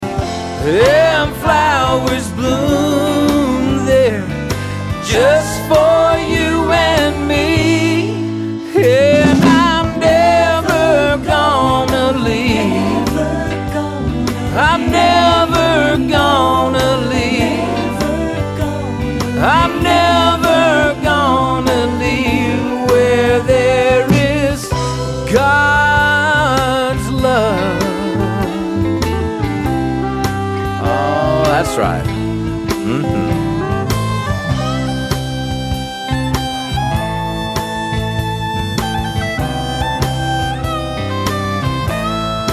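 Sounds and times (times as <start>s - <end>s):
country music: 0.0s - 42.5s.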